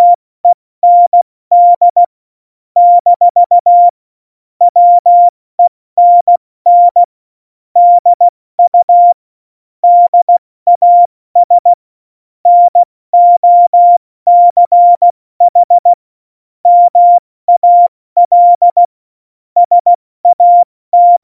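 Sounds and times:
CW Morse code beeps: 0.8s - 2.1s, 2.8s - 3.9s, 4.7s - 5.3s, 6.0s - 7.1s, 7.8s - 9.2s, 9.8s - 11.7s, 12.5s - 15.9s, 16.7s - 18.9s, 19.6s - 21.2s.

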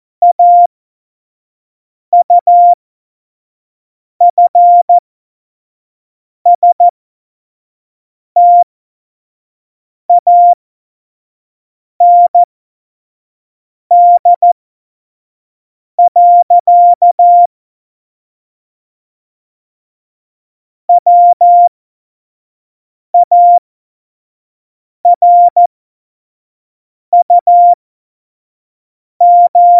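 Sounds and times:
CW Morse code at tempo 70: 0.2s - 0.7s, 2.2s - 2.8s, 4.3s - 5.0s, 6.6s - 6.9s, 8.4s - 8.6s, 10.2s - 10.6s, 12.0s - 12.5s, 13.9s - 14.6s, 16.0s - 17.5s, 20.9s - 21.7s, 23.2s - 23.6s, 25.1s - 25.7s, 27.2s - 27.8s, 29.2s - 29.7s.

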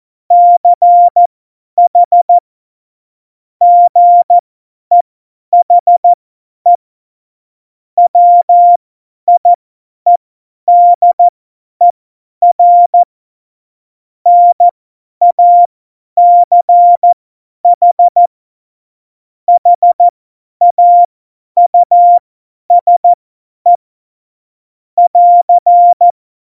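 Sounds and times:
morse code beeps at tempo 70: 0.3s - 1.3s, 1.9s - 2.4s, 3.6s - 5.0s, 5.6s - 6.8s, 8.1s - 9.5s, 10.1s - 11.3s, 12.4s - 13.1s, 14.3s - 18.3s, 19.5s - 23.8s, 25.0s - 26.2s.

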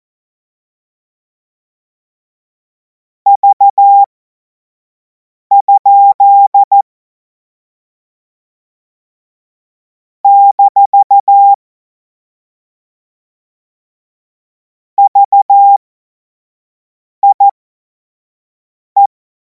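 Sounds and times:
morse code CW: 3.4s - 4.1s, 5.5s - 6.8s, 10.3s - 11.6s, 15.0s - 15.8s, 17.2s - 17.5s.

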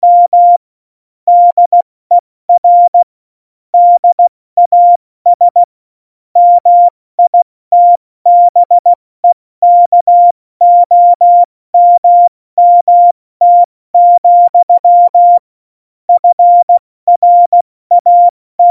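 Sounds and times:
CW Morse code at tempo 70: 0.0s - 0.6s, 1.3s - 1.8s, 3.8s - 5.7s, 6.4s - 15.4s, 16.2s - 18.6s.

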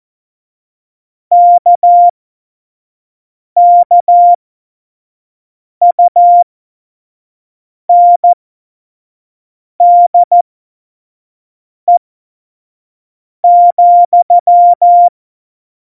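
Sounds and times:
morse code CW: 1.4s - 2.1s, 3.6s - 4.4s, 5.8s - 6.5s, 7.9s - 8.3s, 9.8s - 10.4s, 13.5s - 15.1s.

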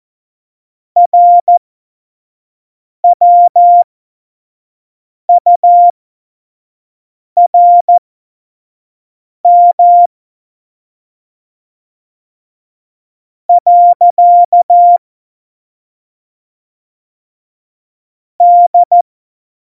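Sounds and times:
CW Morse code beeps: 1.0s - 1.6s, 3.0s - 3.8s, 5.3s - 5.9s, 7.4s - 8.0s, 9.5s - 10.1s, 13.5s - 15.0s, 18.4s - 19.0s.

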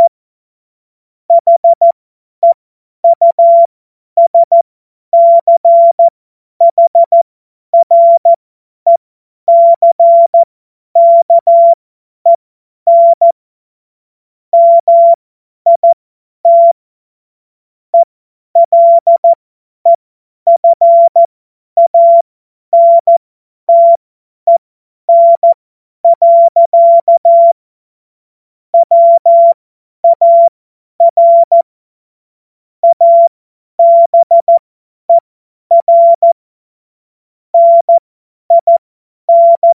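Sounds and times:
CW Morse code beeps: 1.3s - 4.6s, 5.2s - 7.2s, 7.8s - 13.4s, 14.6s - 16.8s, 18.0s - 27.6s, 28.8s - 31.7s, 32.8s - 36.4s, 37.6s - 39.7s.

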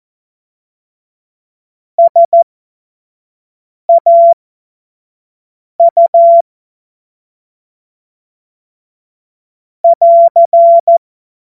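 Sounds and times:
CW Morse code beeps: 2.0s - 2.4s, 3.9s - 4.4s, 5.8s - 6.4s, 9.9s - 11.0s.

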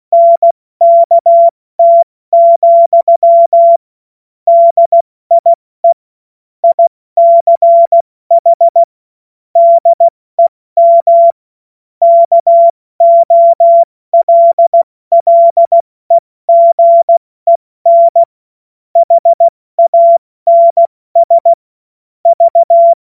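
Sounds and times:
CW Morse code beeps: 0.1s - 3.8s, 4.5s - 6.0s, 6.6s - 8.9s, 9.6s - 11.4s, 12.0s - 15.8s, 16.5s - 18.3s, 19.0s - 21.6s, 22.3s - 23.0s.

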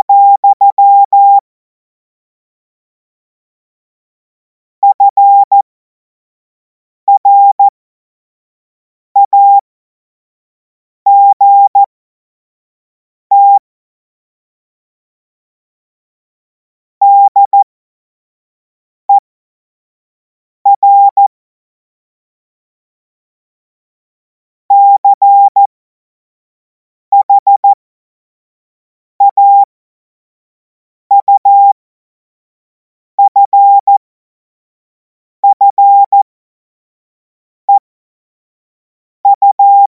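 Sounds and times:
CW Morse code beeps: 0.0s - 1.4s, 4.8s - 5.6s, 7.1s - 7.7s, 9.2s - 9.6s, 11.1s - 11.9s, 13.3s - 13.6s, 17.0s - 17.6s, 20.7s - 21.3s, 24.7s - 25.7s, 27.1s - 27.8s, 29.2s - 29.7s, 31.1s - 31.7s, 33.2s - 34.0s, 35.4s - 36.3s, 39.3s - 39.8s.

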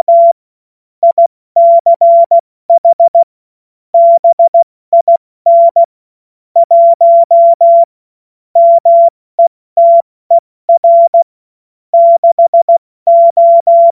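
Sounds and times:
CW Morse code beeps: 0.0s - 0.4s, 1.0s - 3.3s, 4.0s - 5.9s, 6.6s - 7.9s, 8.6s - 10.0s, 10.7s - 11.3s, 12.0s - 13.9s.

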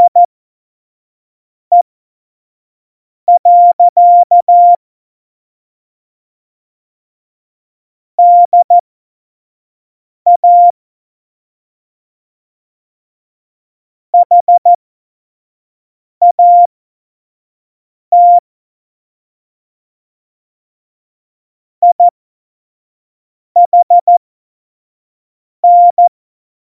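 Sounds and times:
CW Morse code at tempo 70: 0.0s - 0.3s, 3.3s - 4.8s, 8.2s - 8.8s, 10.3s - 10.7s, 14.2s - 14.8s, 16.2s - 16.7s, 18.2s - 18.4s, 23.6s - 24.2s, 25.6s - 26.1s.

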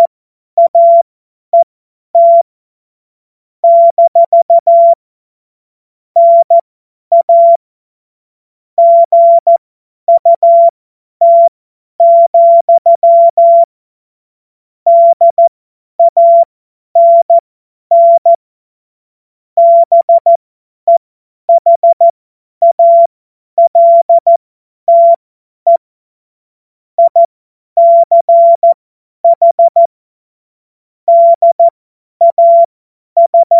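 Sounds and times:
CW Morse code beeps: 0.0s - 1.0s, 2.2s - 2.4s, 3.6s - 5.0s, 6.2s - 7.6s, 8.8s - 13.7s, 14.9s - 18.4s, 19.6s - 25.8s, 27.0s - 29.9s, 31.1s - 33.5s.

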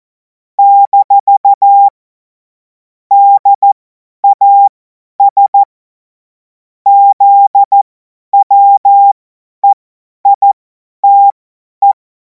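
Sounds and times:
CW Morse code beeps: 0.6s - 1.9s, 3.1s - 5.7s, 6.9s - 7.8s, 8.4s - 12.0s.

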